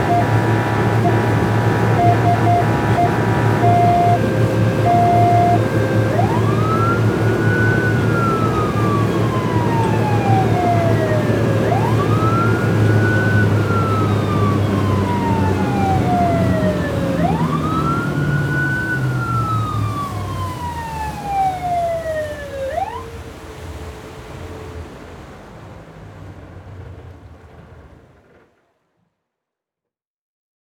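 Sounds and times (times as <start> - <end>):
police boat sirens: 0.0 - 23.8
police boat engine starting, driving and shutting off: 0.0 - 28.0.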